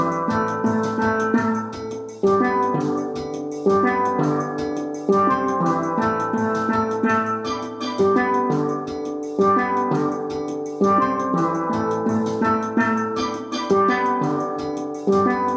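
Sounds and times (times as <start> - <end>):
guitar jam: 0.0 - 15.5
steel band: 0.0 - 15.5.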